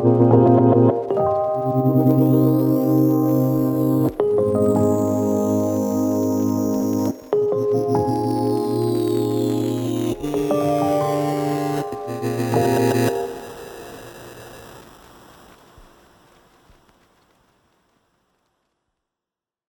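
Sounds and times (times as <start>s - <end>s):
instrumental music: 0.0s - 14.8s.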